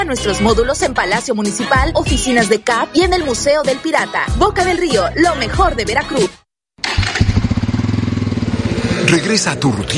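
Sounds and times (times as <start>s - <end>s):
speech: 0.1s - 6.9s, 9.1s - 9.9s
motorcycle engine revving: 6.8s - 9.9s.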